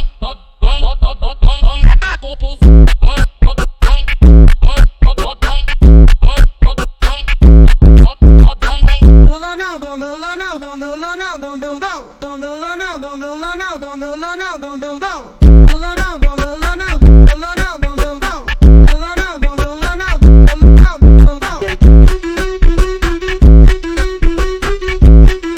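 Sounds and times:
Brazilian phonk music: 0:00.7 - 0:25.5.

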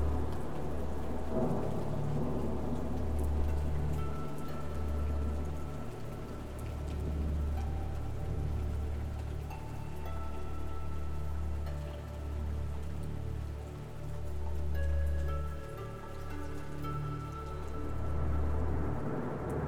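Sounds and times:
gentle rain: 0:00.0 - 0:19.6.

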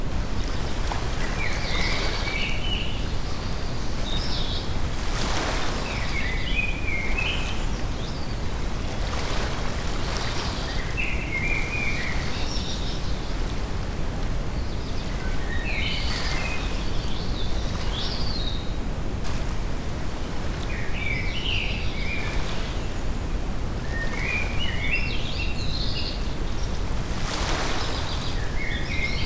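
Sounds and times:
nature sounds: 0:00.0 - 0:29.2.

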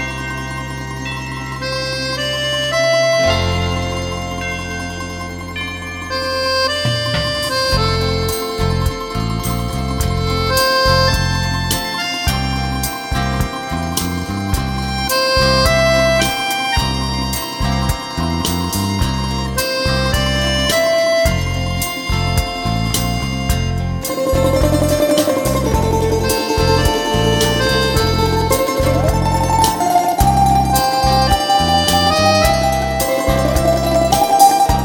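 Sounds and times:
evening bells ringing: 0:00.0 - 0:34.8.

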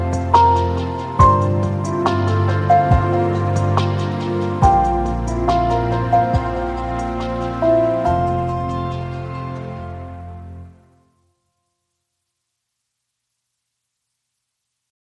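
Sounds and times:
instrumental music: 0:00.0 - 0:11.5.

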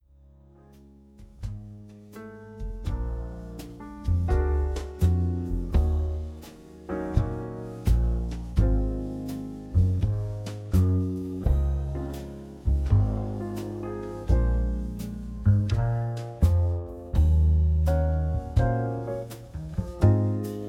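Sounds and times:
jazz music: 0:01.2 - 0:20.6.

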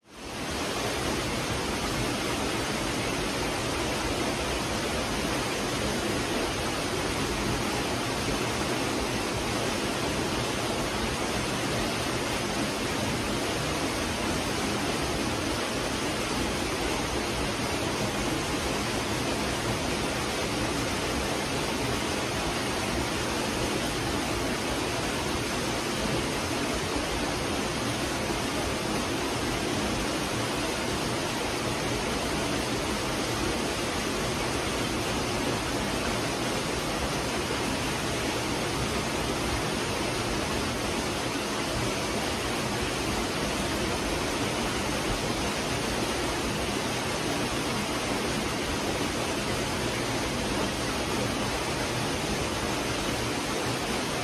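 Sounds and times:
waterfall in a forest: 0:00.0 - 0:54.2.

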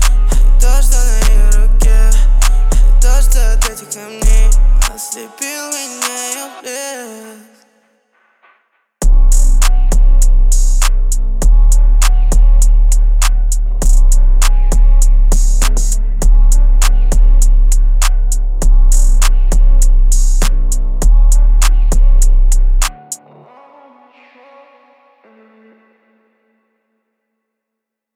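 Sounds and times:
33-37 Hz low bass tone: 0:00.0 - 0:05.0, 0:09.0 - 0:23.2.

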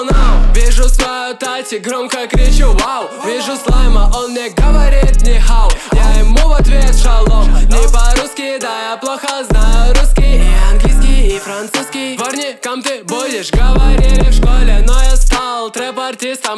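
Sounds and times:
31 33 35Hz low bass tones: 0:00.1 - 0:01.0, 0:02.4 - 0:02.8, 0:03.7 - 0:08.2, 0:09.5 - 0:11.3, 0:13.6 - 0:15.3.

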